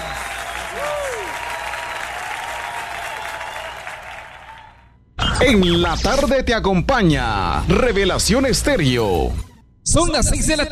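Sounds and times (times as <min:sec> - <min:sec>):
audience applause: 0:00.0 - 0:04.9
speech: 0:05.4 - 0:10.7.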